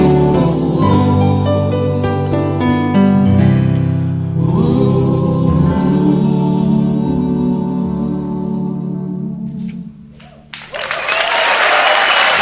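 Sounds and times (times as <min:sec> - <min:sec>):
music: 0:00.0 - 0:10.3
applause: 0:10.5 - 0:12.4.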